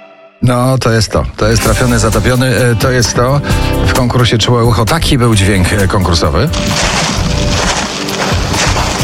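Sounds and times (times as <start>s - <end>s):
speech: 0.5s - 7.2s
walking in autumn leaves: 6.5s - 9.0s.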